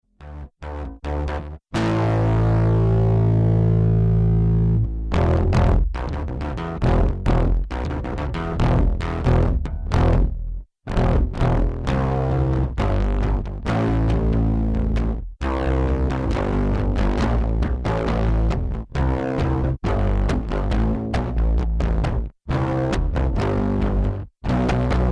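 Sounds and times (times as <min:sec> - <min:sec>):
bass: 0:00.0 - 0:25.1.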